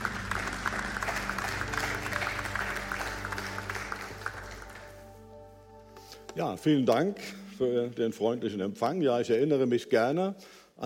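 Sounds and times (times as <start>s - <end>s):
audience applause: 0.0s - 5.1s
speech: 6.4s - 10.8s.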